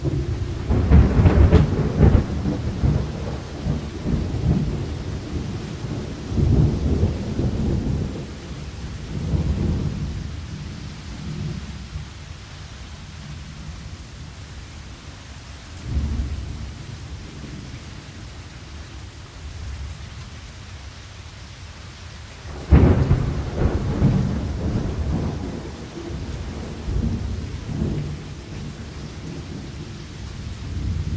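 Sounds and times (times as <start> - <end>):
thunderstorm: 0.0 - 12.2, 15.8 - 19.9, 22.5 - 31.1.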